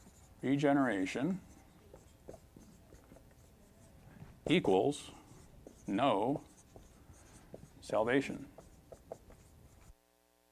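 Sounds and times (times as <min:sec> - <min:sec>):
faint writing strokes on a board: 0:00.0 - 0:10.0
speech: 0:00.4 - 0:01.5, 0:04.5 - 0:05.2, 0:05.9 - 0:06.5, 0:07.9 - 0:08.5.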